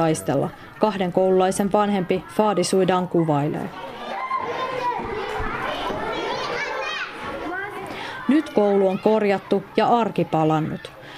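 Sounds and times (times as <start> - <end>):
speech: 0.0 - 4.0, 8.3 - 11.0
schoolchildren playing and shouting: 0.0 - 11.1.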